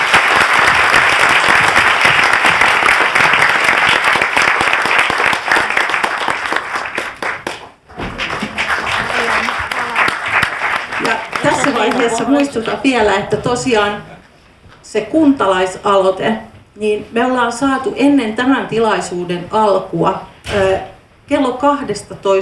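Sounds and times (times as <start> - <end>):
audience applause: 0.0 - 12.8
speech: 12.0 - 14.1, 14.9 - 22.4.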